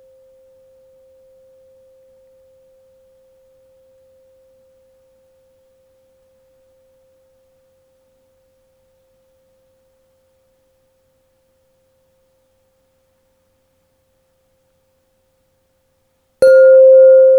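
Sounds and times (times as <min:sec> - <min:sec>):
528Hz tuned pipes ringing: 0:16.4 - 0:17.3.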